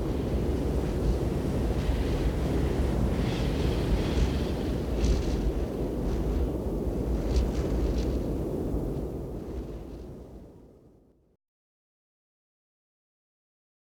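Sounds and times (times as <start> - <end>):
wind sound effect: 0.0 - 11.4.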